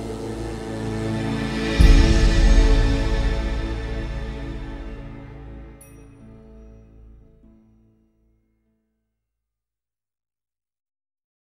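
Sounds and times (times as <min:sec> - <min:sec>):
instrumental music: 0:00.0 - 0:07.9.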